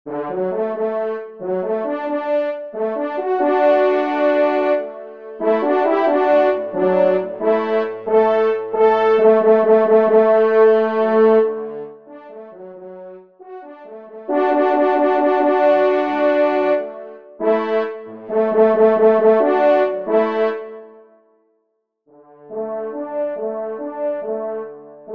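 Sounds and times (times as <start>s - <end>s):
horn: 0.1s - 21.2s, 22.1s - 25.1s.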